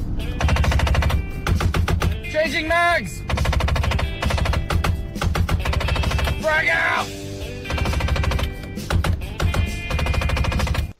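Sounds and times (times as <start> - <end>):
low rumble: 0.0 - 2.3
failing car window actuators rattling: 0.0 - 10.9
speech: 2.5 - 3.2, 6.4 - 7.2.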